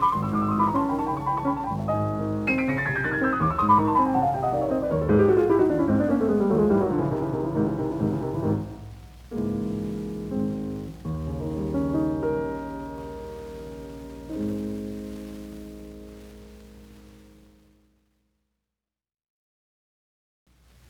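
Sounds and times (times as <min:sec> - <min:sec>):
classical etude allegro in G sharp minor: 0:00.0 - 0:15.6.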